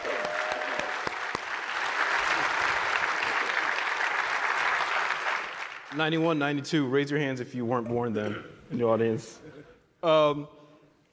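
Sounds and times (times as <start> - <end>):
audience clapping: 0.0 - 6.4
speech: 6.0 - 10.6.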